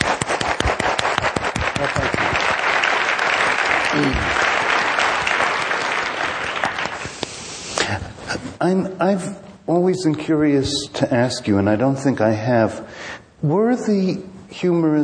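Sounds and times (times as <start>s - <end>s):
audience applause: 0.0s - 7.2s
speech: 8.7s - 15.0s.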